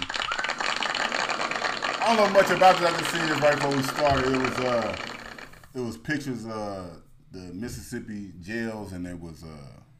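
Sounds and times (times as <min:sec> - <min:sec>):
round of applause: 0:00.0 - 0:05.6
speech: 0:02.1 - 0:05.1, 0:05.8 - 0:09.8.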